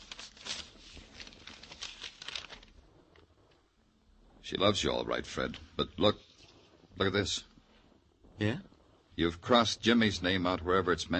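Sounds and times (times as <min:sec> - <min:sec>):
letter paper rustling as pulled out of an envelope: 0:00.0 - 0:03.3
speech: 0:04.5 - 0:06.3, 0:07.0 - 0:07.5, 0:08.4 - 0:11.1.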